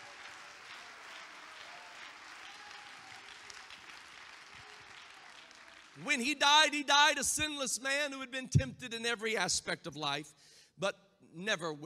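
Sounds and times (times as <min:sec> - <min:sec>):
audience clapping hands: 0:00.0 - 0:06.4
speech: 0:06.0 - 0:11.8.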